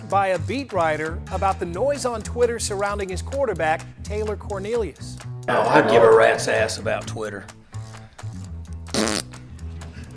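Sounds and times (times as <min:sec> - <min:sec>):
speech: 0:00.1 - 0:07.6
voice blowing a wet raspberry imitating a fart: 0:08.9 - 0:09.4.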